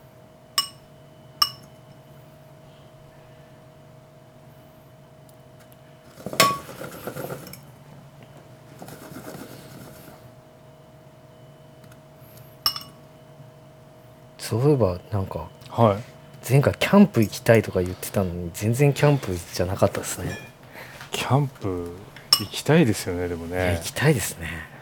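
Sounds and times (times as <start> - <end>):
speech: 14.5 - 20.5, 21.2 - 24.7
fork scooping egg-coated stuffed Italian olives into breadcrumbs: 22.2 - 22.6.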